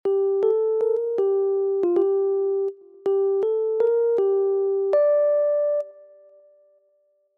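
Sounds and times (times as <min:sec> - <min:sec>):
melody: 0:00.1 - 0:06.4.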